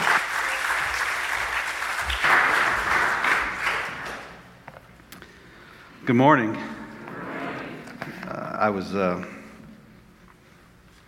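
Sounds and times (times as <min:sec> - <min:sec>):
audience round of applause: 0:00.0 - 0:04.5
speech: 0:06.1 - 0:06.8, 0:08.6 - 0:09.4.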